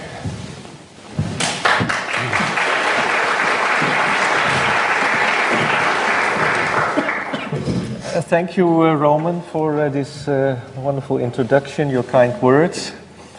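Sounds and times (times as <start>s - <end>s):
audience applause: 1.4s - 7.5s
speech: 8.3s - 13.0s.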